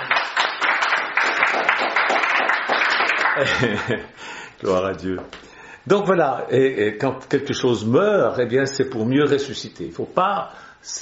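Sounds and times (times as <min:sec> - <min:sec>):
audience applauding: 0:00.0 - 0:03.8
laughter: 0:03.3 - 0:04.2
speech: 0:03.4 - 0:11.0.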